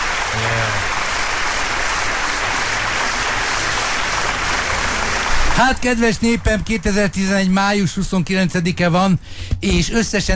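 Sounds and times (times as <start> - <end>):
storm of applause: 0.0 - 7.8
speech: 5.6 - 10.3.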